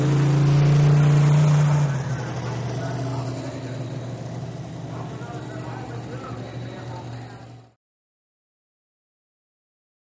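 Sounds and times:
monster truck engines: 0:00.0 - 0:07.8.

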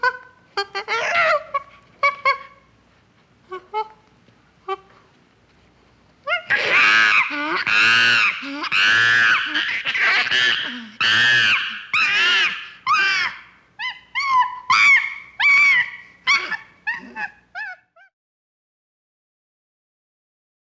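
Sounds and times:
chimpanzee hooting and screaming: 0:00.0 - 0:02.7, 0:06.3 - 0:18.1.

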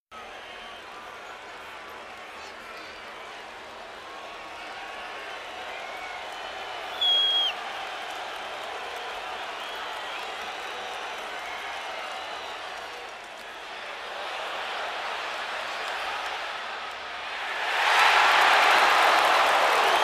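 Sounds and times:
football crowd in a sports arena: 0:00.1 - 0:20.0.

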